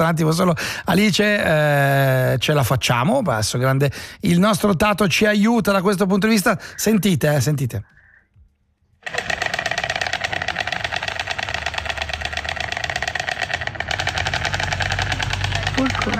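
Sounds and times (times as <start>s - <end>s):
speech: 0.0s - 8.0s
storks clattering their bills in Uznach, Canton of St. Gallen, Switzerland: 9.0s - 16.1s.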